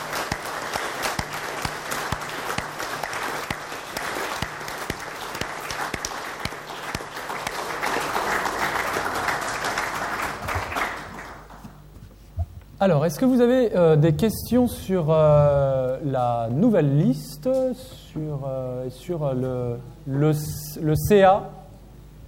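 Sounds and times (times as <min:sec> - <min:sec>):
audience applause: 0:00.0 - 0:11.6
speech: 0:12.8 - 0:21.6.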